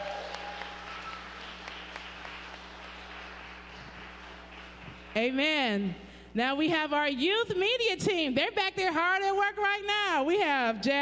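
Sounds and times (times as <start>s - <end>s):
crowd round of applause: 0.0s - 5.2s
speech: 5.2s - 11.0s.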